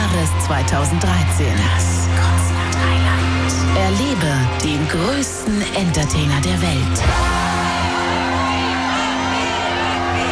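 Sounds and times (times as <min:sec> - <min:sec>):
stadium crowd screaming and cheering: 0:00.0 - 0:10.3
speech: 0:00.5 - 0:03.0, 0:03.8 - 0:07.4.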